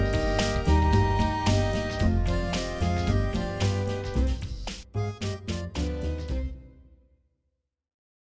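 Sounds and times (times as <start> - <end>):
tango music: 0.0 - 6.6.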